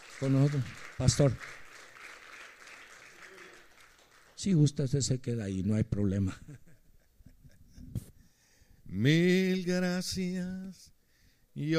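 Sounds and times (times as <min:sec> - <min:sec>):
applause: 0:00.0 - 0:04.9
speech: 0:00.2 - 0:01.6, 0:04.4 - 0:06.6, 0:08.9 - 0:10.9, 0:11.6 - 0:11.7.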